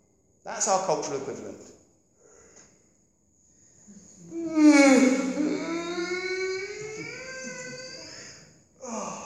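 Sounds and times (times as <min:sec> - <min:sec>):
speech: 0:00.4 - 0:01.8, 0:04.3 - 0:05.5
exaggerated jaw-cracking yawn: 0:03.9 - 0:09.2.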